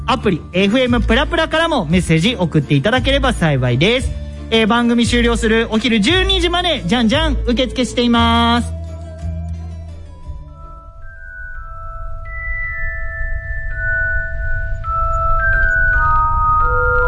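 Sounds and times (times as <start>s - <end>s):
radio music with bell-like chiming melody: 0.0s - 17.0s
speech: 0.1s - 8.8s
steady low rumble: 10.4s - 17.0s.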